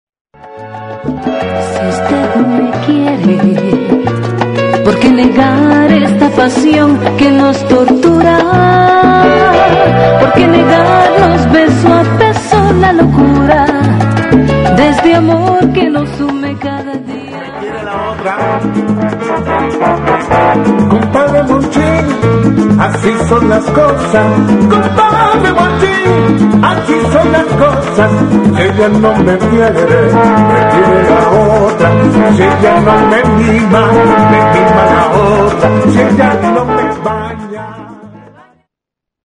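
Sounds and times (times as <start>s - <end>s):
Latin salsa music: 0.3s - 38.7s.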